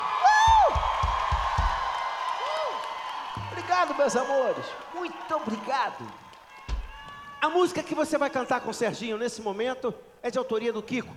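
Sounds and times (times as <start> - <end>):
audience applauding and cheering: 0.0 - 8.8
speech: 4.0 - 6.2, 7.4 - 11.1.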